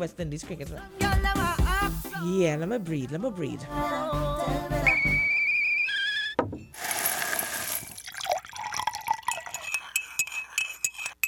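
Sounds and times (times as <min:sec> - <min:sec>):
speech: 0:00.0 - 0:05.3
cup clinking: 0:06.4 - 0:11.2
coffee pouring into a cup: 0:06.8 - 0:10.4.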